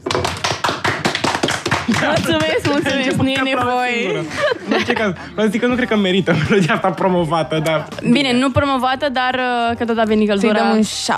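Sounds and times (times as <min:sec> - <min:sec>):
applause: 0:00.0 - 0:03.5
laughter: 0:01.9 - 0:07.8
speech: 0:01.9 - 0:11.1.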